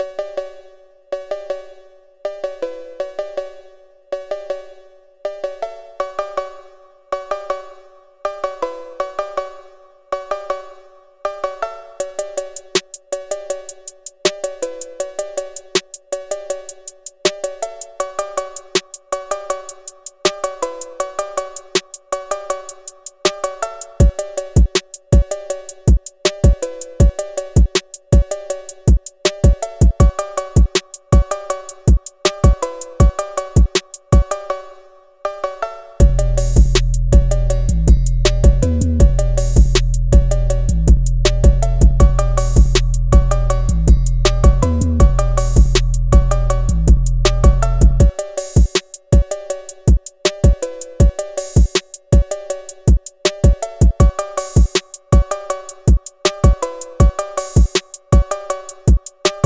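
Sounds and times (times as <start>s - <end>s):
phonk music: 18.1s - 34.6s, 36.0s - 59.4s.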